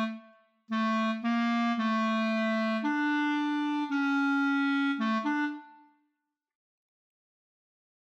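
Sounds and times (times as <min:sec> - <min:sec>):
clarinet playing a csardas folk dance: 0:00.0 - 0:05.8.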